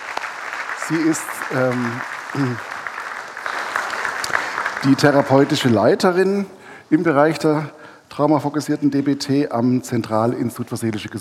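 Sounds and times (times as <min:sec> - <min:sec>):
faint audience applause at a lecture event: 0:00.0 - 0:06.3
speech: 0:00.9 - 0:02.7, 0:04.8 - 0:11.1.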